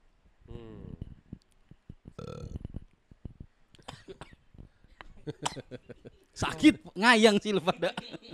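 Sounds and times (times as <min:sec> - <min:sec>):
burp: 0:02.2 - 0:02.6
speech: 0:05.4 - 0:08.3
laughter: 0:07.5 - 0:08.3.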